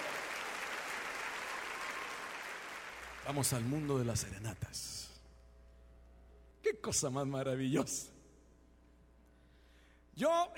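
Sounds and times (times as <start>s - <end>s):
crowd applauding: 0.0s - 4.4s
speech: 3.2s - 5.1s, 6.8s - 8.2s, 10.2s - 10.5s.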